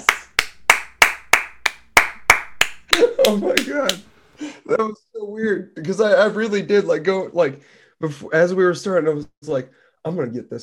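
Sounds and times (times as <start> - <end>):
hand claps: 0.0 - 4.1
speech: 3.0 - 10.6.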